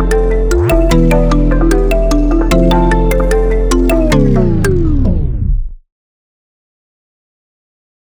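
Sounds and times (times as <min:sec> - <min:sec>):
afro trap music: 0:00.0 - 0:04.9.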